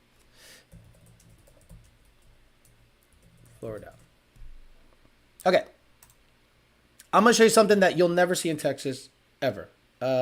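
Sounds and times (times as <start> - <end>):
low steady hum: 0.0 - 10.2
soft computer keyboard typing: 0.7 - 4.6, 6.0 - 6.2
speech: 3.6 - 4.1, 5.4 - 5.7, 7.1 - 10.2.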